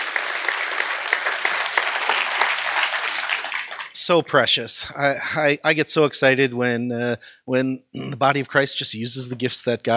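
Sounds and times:
audience applause: 0.0s - 4.0s
speech: 4.0s - 9.9s.

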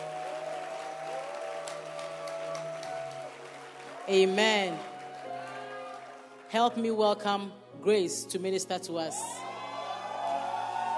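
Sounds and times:
audience clapping: 0.0s - 6.8s, 9.7s - 10.9s
speech: 4.1s - 4.9s, 6.5s - 9.4s.

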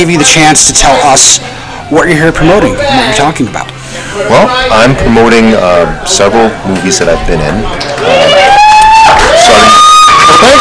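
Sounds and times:
speech: 0.0s - 8.5s, 9.4s - 10.5s
audience cheering: 7.9s - 10.5s.

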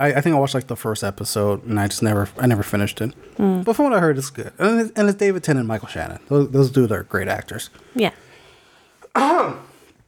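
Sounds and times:
speech: 0.0s - 8.3s, 9.2s - 9.7s
person coughing: 9.1s - 9.8s.

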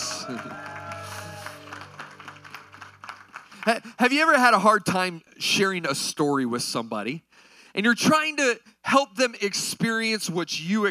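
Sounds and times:
shouts: 0.0s - 1.7s
crowd clapping: 0.0s - 5.0s
speech: 0.3s - 0.7s, 3.6s - 10.8s
sustained musical tones: 1.0s - 3.6s.

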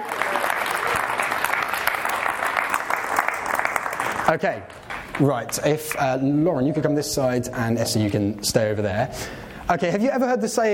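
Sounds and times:
audience round of applause: 0.0s - 5.8s
speech: 4.3s - 10.7s.

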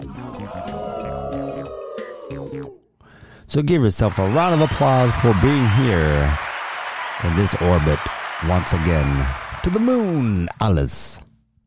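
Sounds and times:
howling awoos: 0.2s - 2.8s
speech: 3.5s - 6.4s, 7.2s - 11.2s.

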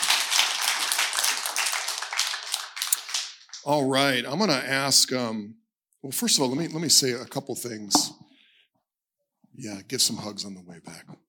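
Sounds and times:
audience clapping: 0.0s - 4.1s
speech: 3.6s - 8.2s, 9.6s - 11.2s.

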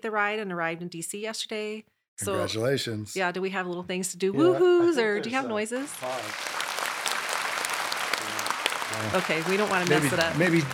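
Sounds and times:
speech: 0.0s - 6.6s, 8.9s - 10.7s
crowd applause: 5.8s - 10.7s.

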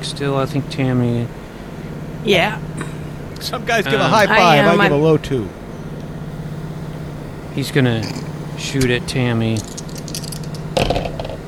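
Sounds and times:
speech: 0.0s - 1.4s, 2.2s - 5.6s, 7.6s - 9.8s
faint steady low hum: 0.0s - 11.4s
dice rolling on a hard surface: 9.6s - 11.4s.

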